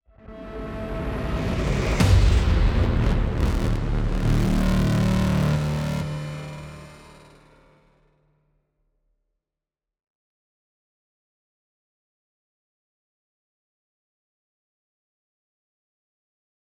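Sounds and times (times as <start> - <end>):
hit: 1.9 - 7.9.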